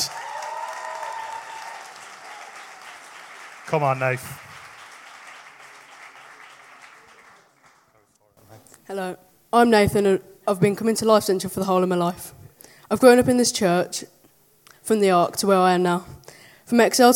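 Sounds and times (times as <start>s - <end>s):
audience applause: 0.0s - 8.1s
speech: 3.7s - 4.5s, 8.9s - 14.2s, 14.9s - 17.1s.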